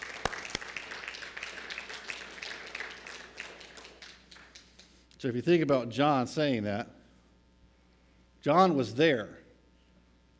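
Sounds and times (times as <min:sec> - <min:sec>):
audience clapping: 0:00.0 - 0:05.0
speech: 0:05.2 - 0:07.0, 0:08.4 - 0:09.4.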